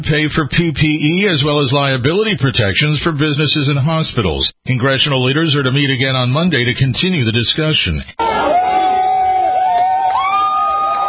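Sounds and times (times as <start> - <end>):
speech: 0.0 - 8.3
protesters in Portland cheering after federal troops leave: 8.2 - 11.0.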